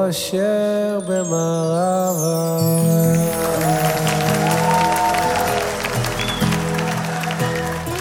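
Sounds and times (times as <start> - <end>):
speech: 0.1 - 2.6
audience applause: 3.1 - 7.9.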